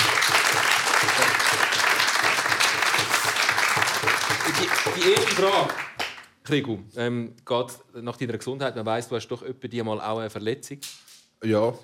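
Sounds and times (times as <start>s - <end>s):
crowd applauding: 0.0s - 6.3s
speech: 5.0s - 5.8s, 6.5s - 11.8s.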